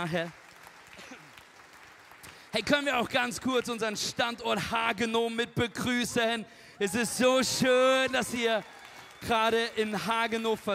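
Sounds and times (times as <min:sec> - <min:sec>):
speech: 0:00.0 - 0:00.4, 0:02.5 - 0:10.7
audience applause: 0:00.0 - 0:03.7, 0:06.9 - 0:10.7.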